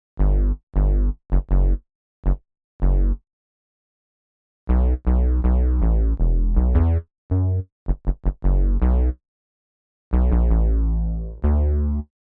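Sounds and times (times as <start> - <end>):
synth bass: 0.2 - 3.2, 4.7 - 9.2, 10.1 - 12.1.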